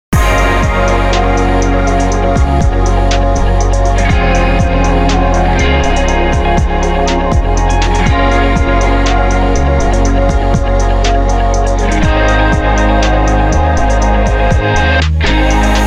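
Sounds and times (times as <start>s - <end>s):
ambient music: 0.2s - 15.8s.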